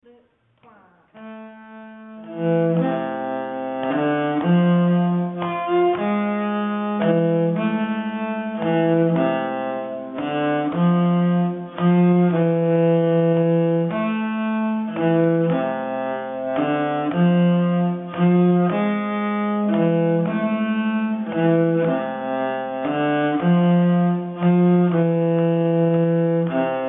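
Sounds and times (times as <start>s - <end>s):
nyckelharpa playing a polska: 1.2s - 26.8s.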